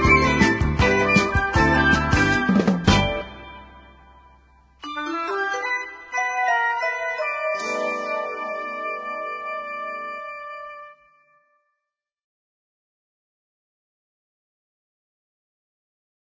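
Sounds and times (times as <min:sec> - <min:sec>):
Muzak background music: 0:00.0 - 0:11.2.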